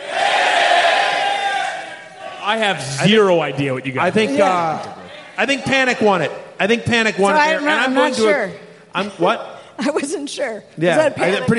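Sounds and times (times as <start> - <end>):
audience yelling an answer together on a count of three: 0.0 - 2.6
speech: 2.5 - 11.5.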